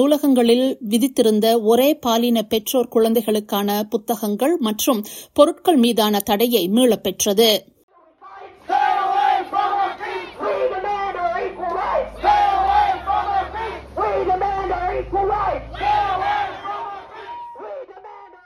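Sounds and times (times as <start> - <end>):
speech: 0.0 - 7.7
protesters chanting outside council meeting: 8.0 - 18.4.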